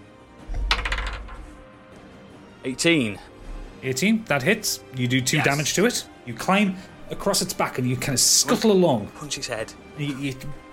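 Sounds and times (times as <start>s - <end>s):
twenty-sided die rolled across a hard surface: 0.5s - 1.6s
speech: 2.6s - 10.7s.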